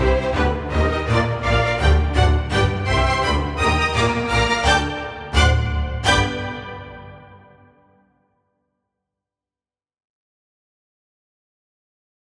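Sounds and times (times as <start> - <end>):
solo strings: 0.0 - 7.7.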